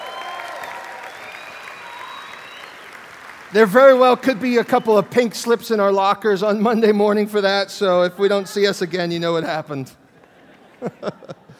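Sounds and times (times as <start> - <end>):
audience applause: 0.0 - 5.4
speech: 3.5 - 10.0, 10.8 - 11.4
laughter: 10.1 - 11.5.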